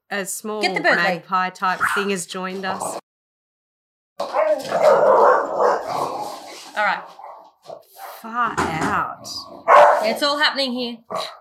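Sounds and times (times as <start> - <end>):
speech: 0.1 - 3.0, 8.2 - 11.4
dog barking: 1.8 - 2.1, 4.2 - 6.3, 7.0 - 8.2, 9.6 - 10.2, 11.1 - 11.4.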